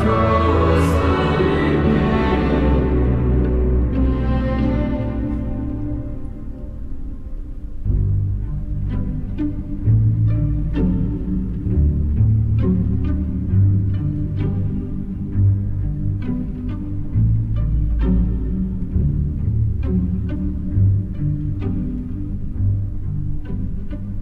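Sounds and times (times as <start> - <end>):
female choir singing a lullaby: 0.0 - 5.5
strings playing: 0.0 - 24.2.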